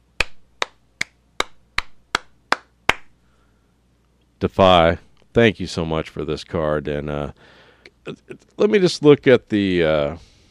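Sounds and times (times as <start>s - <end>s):
hand claps: 0.2s - 3.2s
speech: 4.4s - 10.3s.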